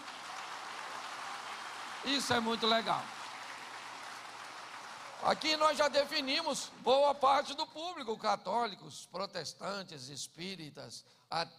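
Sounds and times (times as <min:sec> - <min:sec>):
audience applause: 0:00.0 - 0:06.8
speech: 0:02.0 - 0:03.2, 0:05.2 - 0:11.5.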